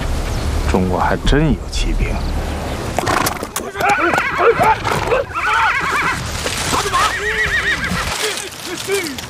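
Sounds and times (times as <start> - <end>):
speech: 0.7 - 2.5, 4.0 - 5.3, 8.7 - 9.2
Zhangbei horse neighing: 3.0 - 8.3.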